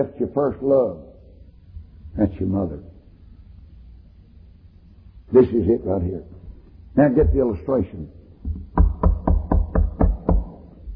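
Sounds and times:
speech: 0:00.0 - 0:01.1, 0:02.2 - 0:02.9, 0:05.3 - 0:06.4, 0:07.0 - 0:08.6
knocking on a door: 0:07.2 - 0:07.5, 0:08.4 - 0:10.9.

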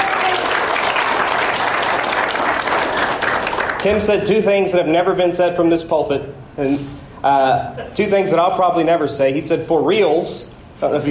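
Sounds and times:
church congregation applauding after a Palm Sunday sermon: 0:00.0 - 0:04.0
speech: 0:03.8 - 0:11.1.

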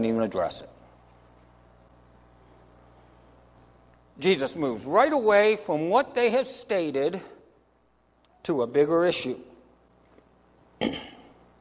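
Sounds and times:
speech: 0:00.0 - 0:00.8, 0:04.2 - 0:07.4, 0:08.4 - 0:09.5, 0:10.8 - 0:11.2
throat clearing: 0:10.8 - 0:11.4.

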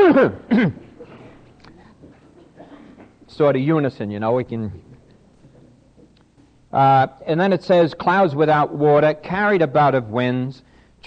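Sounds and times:
people coughing: 0:00.0 - 0:03.3
speech: 0:00.2 - 0:00.8, 0:03.3 - 0:04.9, 0:06.7 - 0:11.0.

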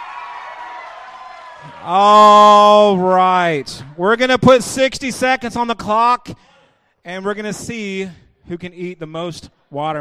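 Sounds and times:
audience cheering for the girls: 0:00.0 - 0:04.0
speech: 0:01.6 - 0:09.9.

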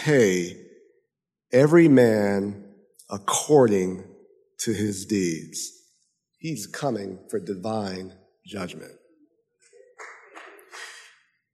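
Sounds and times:
speech: 0:00.0 - 0:00.6, 0:01.5 - 0:05.8, 0:06.4 - 0:09.0
a few people clapping: 0:09.8 - 0:11.2.

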